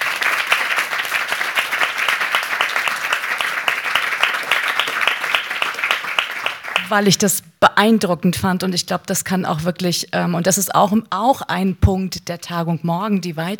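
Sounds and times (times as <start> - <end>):
audience applause: 0.0 - 6.9
speech: 6.9 - 13.5.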